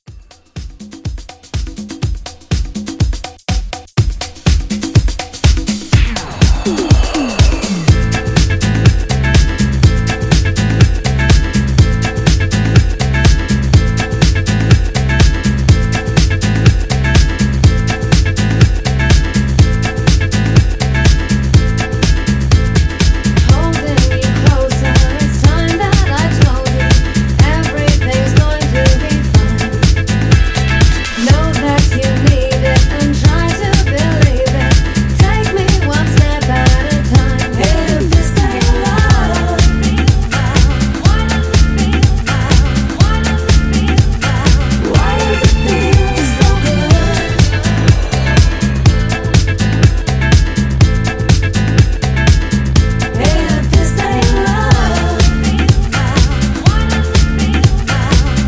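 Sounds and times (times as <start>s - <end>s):
disco drums: 0.0s - 58.4s.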